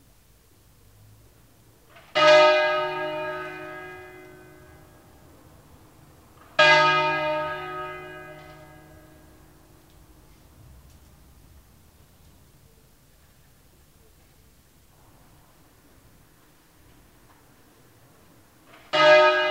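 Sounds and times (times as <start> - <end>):
church bells ringing for a funeral: 2.0 - 5.4, 6.4 - 9.8, 18.7 - 19.4.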